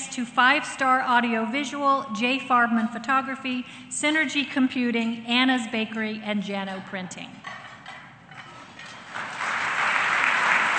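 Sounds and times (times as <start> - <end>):
speech: 0.2 - 7.6
crowd applause: 9.0 - 10.7.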